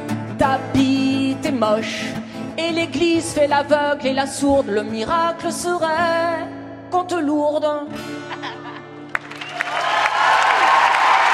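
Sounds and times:
speech: 0:00.4 - 0:08.2
audience applause: 0:09.1 - 0:11.3.

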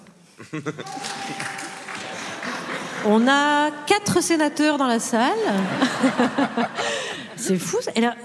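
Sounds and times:
speech: 0:00.4 - 0:01.7, 0:03.0 - 0:08.2
laughter: 0:00.4 - 0:03.5, 0:05.3 - 0:07.4
audience applause as a vote: 0:00.8 - 0:03.2.

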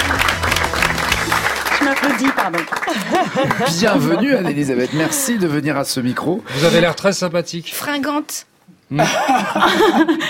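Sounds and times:
crowd applauding: 0:00.0 - 0:04.3
speech: 0:02.2 - 0:10.2
laughter: 0:02.7 - 0:05.6, 0:08.9 - 0:10.2.

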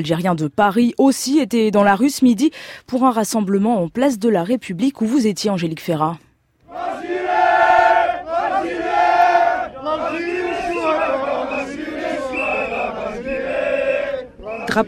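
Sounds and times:
speech: 0:00.0 - 0:07.1
crowd chanting patriotic songs at rally: 0:06.7 - 0:14.8.

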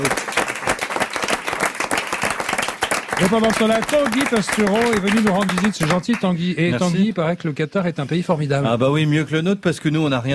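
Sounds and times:
crowd applauding: 0:00.0 - 0:06.4
speech: 0:03.2 - 0:10.3.

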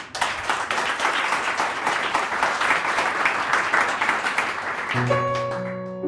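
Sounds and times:
audience applause: 0:00.0 - 0:05.9
speech: 0:05.0 - 0:05.4.

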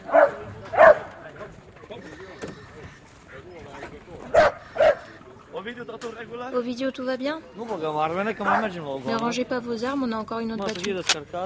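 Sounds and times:
low murmur: 0:00.0 - 0:11.4
dog barking: 0:00.1 - 0:01.1, 0:04.3 - 0:05.1, 0:08.4 - 0:08.7
speech: 0:06.4 - 0:11.4.

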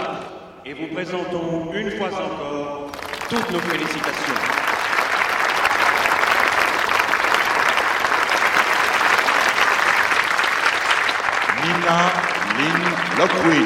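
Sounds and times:
speech: 0:00.7 - 0:04.6, 0:11.9 - 0:13.6
families applauding at a graduation ceremony: 0:02.9 - 0:13.6.

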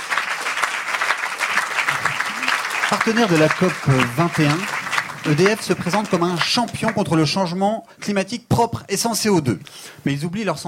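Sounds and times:
group applauding EDF at a mock awards event during COP21: 0:00.0 - 0:07.3
speech: 0:02.9 - 0:10.6.

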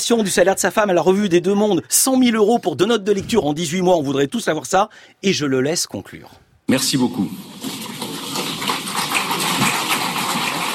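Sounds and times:
speech: 0:00.0 - 0:07.8
crowd applauding: 0:07.6 - 0:10.7.

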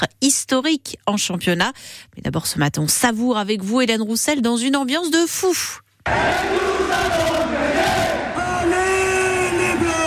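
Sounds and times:
speech: 0:00.0 - 0:08.8
crowd cheering in the stands of the Coubertin arena: 0:06.1 - 0:10.0.

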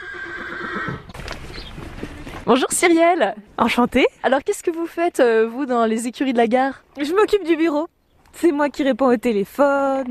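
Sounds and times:
horse or pony whinnying at stables: 0:00.0 - 0:01.2
soft hoof clops: 0:01.1 - 0:02.5
rustling and shuffling: 0:01.1 - 0:04.1
speech: 0:02.5 - 0:10.0.

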